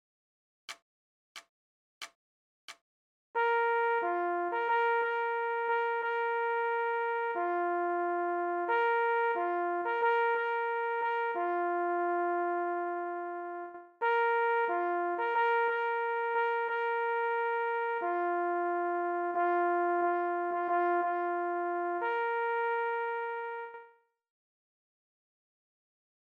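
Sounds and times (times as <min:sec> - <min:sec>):
leggiero signal horn: 0:03.4 - 0:24.0.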